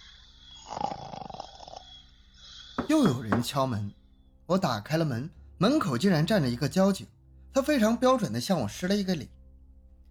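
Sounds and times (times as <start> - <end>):
person snoring: 0.0 - 3.0
speech: 2.9 - 9.4.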